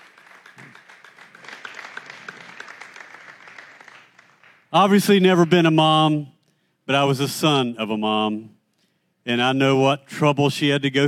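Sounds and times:
crowd applause: 0.0 - 4.7
speech: 4.7 - 6.3, 6.9 - 8.6, 9.2 - 11.0.

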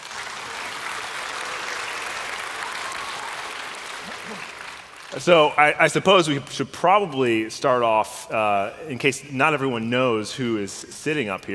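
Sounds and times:
crowd applauding: 0.0 - 6.4
speech: 5.1 - 11.5.

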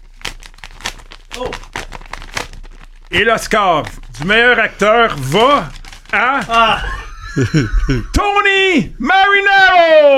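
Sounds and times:
envelope being opened, crinkling and tearing paper: 0.0 - 6.9
speech: 1.4 - 1.8, 3.1 - 10.1
laughter: 6.5 - 8.4.

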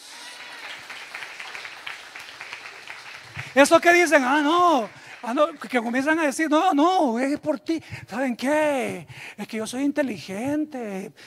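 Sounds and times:
crowd applauding: 0.0 - 6.7
speech: 3.6 - 11.2.

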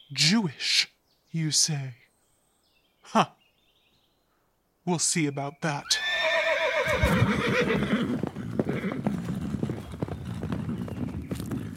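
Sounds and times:
speech: 0.1 - 2.0, 3.1 - 3.4, 4.8 - 6.1, 6.8 - 8.3
horse whinny: 5.8 - 11.7
army horses clip-clop hoofbeats: 6.8 - 11.7.

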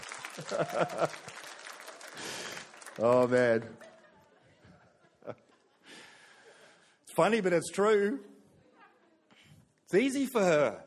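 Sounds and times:
audience applause: 0.0 - 4.4
laughter: 0.2 - 2.6, 3.4 - 6.2
speech: 0.4 - 1.4, 3.0 - 3.9, 5.2 - 5.4, 7.2 - 8.3, 9.9 - 10.8.

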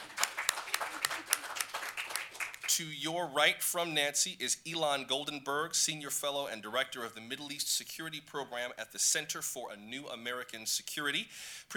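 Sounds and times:
audience at a policy panel discussion clapping: 0.0 - 2.8
speech: 2.8 - 11.7.

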